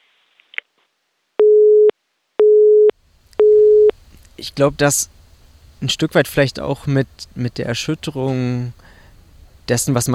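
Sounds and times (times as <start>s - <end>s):
telephone busy signal: 1.4s - 3.9s
speech: 4.4s - 5.2s, 5.8s - 9.0s, 9.7s - 10.1s.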